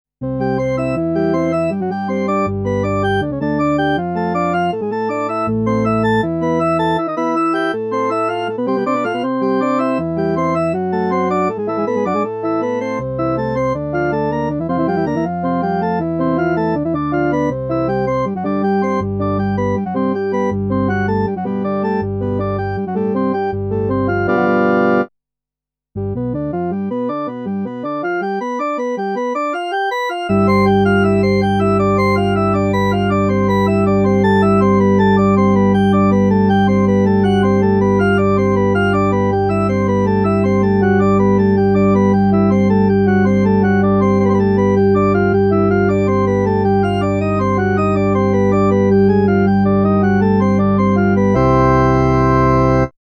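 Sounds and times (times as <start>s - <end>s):
praeambulum in C major: 0.2s - 25.1s, 26.0s - 53.0s.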